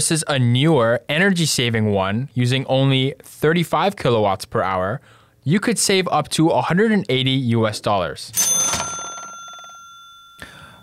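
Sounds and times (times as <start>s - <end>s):
speech: 0.0s - 8.8s
cash register cha-ching sound effect: 8.4s - 10.8s.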